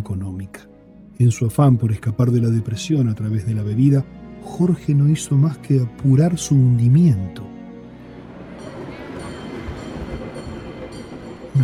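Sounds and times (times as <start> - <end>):
speech: 0.4 - 7.5
tram rolling along rails: 5.3 - 11.6.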